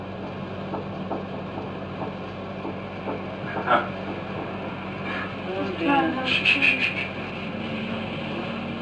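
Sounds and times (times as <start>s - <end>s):
steady low electrical hum: 0.0s - 8.8s
rapid repeated knocking: 0.2s - 5.0s.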